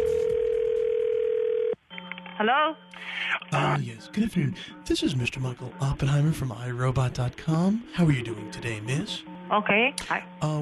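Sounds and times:
telephone dial tone: 0.0 - 2.2
speech: 2.4 - 10.6.

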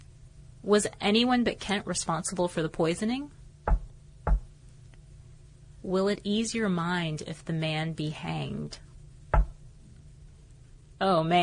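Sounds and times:
speech: 0.6 - 3.4, 5.8 - 8.9, 11.0 - 11.4
single knock: 3.7 - 4.5, 9.4 - 9.6.

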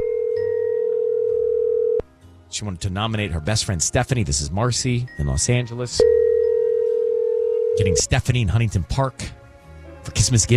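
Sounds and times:
telephone line ringback tone: 0.0 - 2.0, 6.0 - 8.0
speech: 2.5 - 6.2, 7.8 - 9.4, 10.0 - 10.5.

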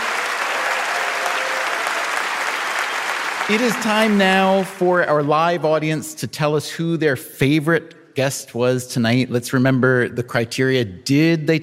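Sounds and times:
audience applause: 0.0 - 4.9
speech: 3.5 - 11.6.

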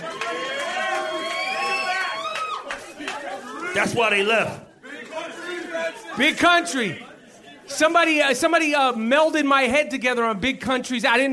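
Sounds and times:
crowd cheering at a basketball game: 0.0 - 7.0
speech: 3.8 - 4.7, 5.9 - 7.1, 7.7 - 11.3.

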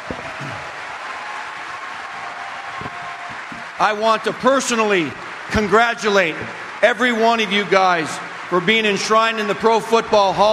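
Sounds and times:
audience applause for 2013 Pro Football Hall of Fame inductees: 0.0 - 10.5
speech: 3.8 - 10.5.

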